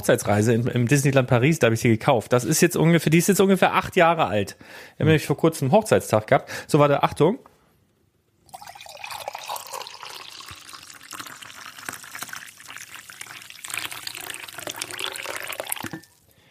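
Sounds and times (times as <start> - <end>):
speech: 0.0 - 7.5
liquid pouring into a large mug: 8.5 - 16.2.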